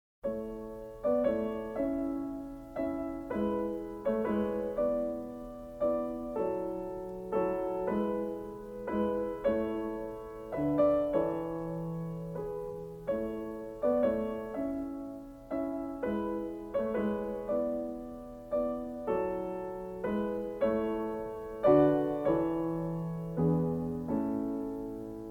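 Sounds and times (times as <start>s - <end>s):
classical piano sonata: 0.2s - 25.2s.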